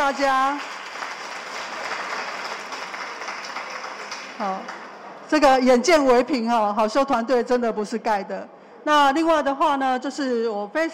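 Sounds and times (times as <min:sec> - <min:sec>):
speech: 0:00.1 - 0:00.8, 0:04.4 - 0:10.9
audience applause for a team at a large ceremonial gathering: 0:00.5 - 0:05.0.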